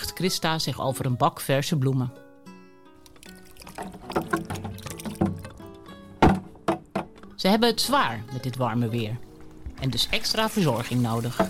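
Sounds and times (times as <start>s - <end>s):
speech: 0.2s - 2.2s, 7.4s - 11.4s
water poured over yellow chrysanthemums on a black marble grave: 3.0s - 5.9s.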